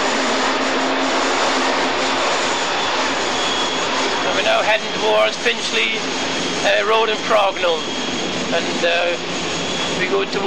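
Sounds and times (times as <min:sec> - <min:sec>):
electric train passing to Richmond: 0:00.0 - 0:10.4
speech: 0:04.6 - 0:09.2, 0:10.0 - 0:10.4.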